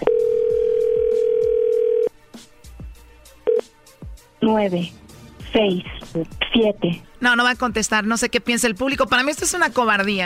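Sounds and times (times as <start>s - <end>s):
telephone dial tone: 0.0s - 2.1s
speech: 4.4s - 5.0s, 5.6s - 10.2s.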